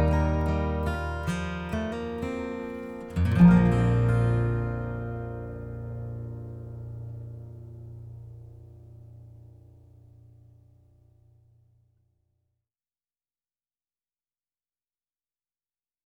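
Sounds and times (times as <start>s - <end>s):
acoustic music: 0.0s - 10.1s.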